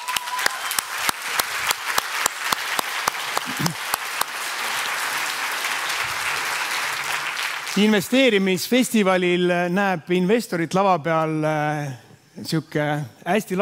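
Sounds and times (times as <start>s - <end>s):
crowd noise: 0.0s - 8.0s
audience applause: 0.0s - 8.3s
speech: 7.8s - 13.6s.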